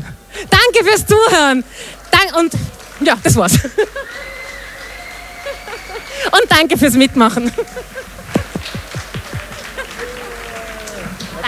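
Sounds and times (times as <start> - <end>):
audience applause: 0.0 - 11.4
laughter: 0.0 - 11.4
regular sharper beats: 0.0 - 11.4
speech: 0.4 - 4.3, 6.2 - 8.2
brief whistle-like tones: 3.6 - 11.4.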